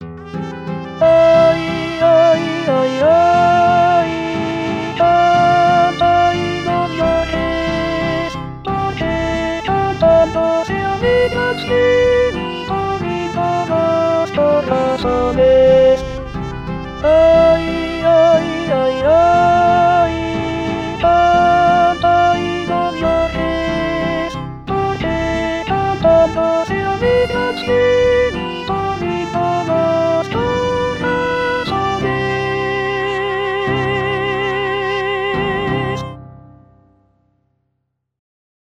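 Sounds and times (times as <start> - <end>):
alto part: 0.0 - 36.5.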